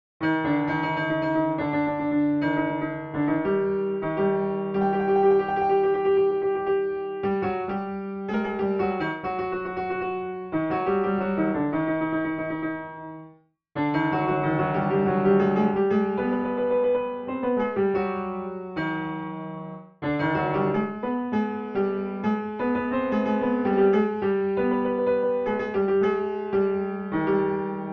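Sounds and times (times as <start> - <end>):
piano piece: 0.2 - 27.9.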